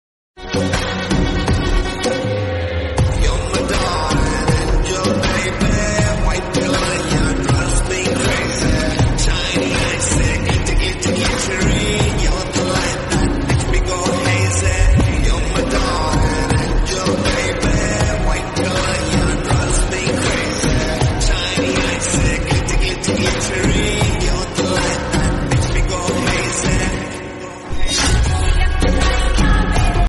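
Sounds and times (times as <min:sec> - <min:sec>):
slowed Punjabi song with reverb: 0:00.4 - 0:30.0.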